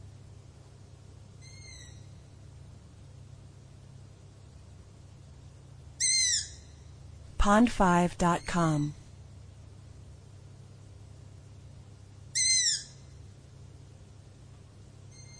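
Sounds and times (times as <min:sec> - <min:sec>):
faint low hum: 0:00.0 - 0:15.3
owl screech: 0:01.4 - 0:02.1, 0:06.0 - 0:06.8, 0:12.3 - 0:13.1, 0:15.1 - 0:15.3
speech: 0:07.4 - 0:09.0.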